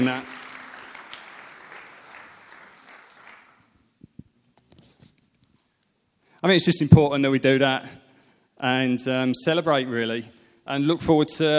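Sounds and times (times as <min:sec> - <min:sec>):
speech: 0:00.0 - 0:00.4, 0:06.4 - 0:08.0, 0:08.6 - 0:11.5
round of applause: 0:00.0 - 0:03.8.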